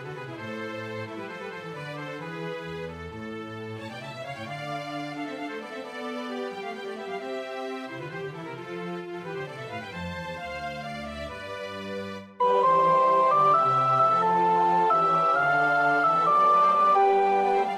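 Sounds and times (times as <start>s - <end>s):
soprano practising a choir part: 12.4s - 17.7s.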